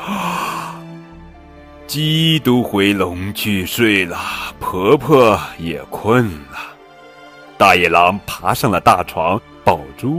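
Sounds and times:
person yawning: 0:00.0 - 0:01.0
speech: 0:01.9 - 0:06.7, 0:07.6 - 0:10.1.

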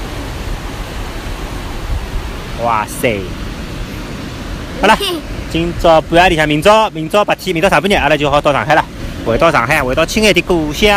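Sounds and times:
sea waves on a beach: 0:00.0 - 0:10.9
speech: 0:02.6 - 0:03.4, 0:04.8 - 0:10.9.

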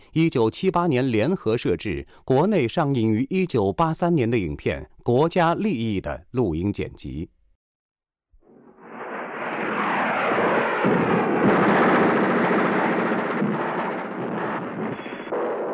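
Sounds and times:
speech: 0:00.1 - 0:07.4
artillery shells exploding: 0:08.5 - 0:15.7
warplanes roaring overhead: 0:08.5 - 0:15.7.

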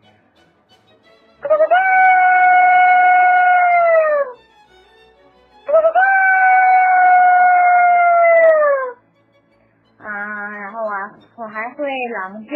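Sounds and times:
person imitating a rooster crowing: 0:01.5 - 0:04.4, 0:05.7 - 0:09.0.

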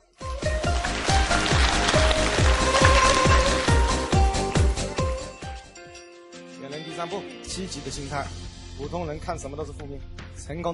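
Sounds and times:
audience applause: 0:00.7 - 0:04.7
speech: 0:07.1 - 0:10.7.

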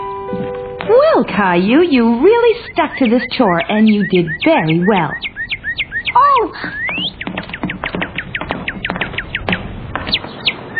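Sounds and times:
speech: 0:00.9 - 0:05.3, 0:06.1 - 0:06.8
baby cardinal chirping in a children's cartoon: 0:01.6 - 0:10.7
light tapping: 0:05.2 - 0:10.5.

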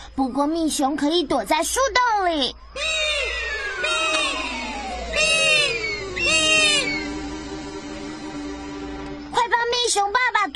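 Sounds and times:
speech: 0:00.2 - 0:03.0, 0:10.0 - 0:10.5
harpy eagle shrill wailing calls: 0:02.8 - 0:07.5
steady drone: 0:02.8 - 0:09.9.

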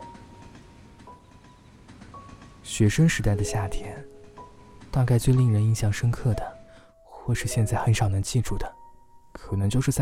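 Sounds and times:
wheels clacking over rail joints: 0:00.0 - 0:06.4
passenger train rumbling past: 0:00.0 - 0:07.0
speech: 0:02.7 - 0:04.1, 0:05.0 - 0:06.5, 0:07.2 - 0:08.8, 0:09.4 - 0:10.0.

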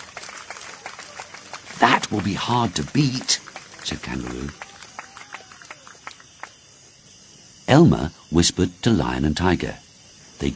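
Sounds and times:
crowd applauding: 0:00.0 - 0:06.6
speech: 0:01.8 - 0:04.6, 0:07.7 - 0:09.8, 0:10.4 - 0:10.5.

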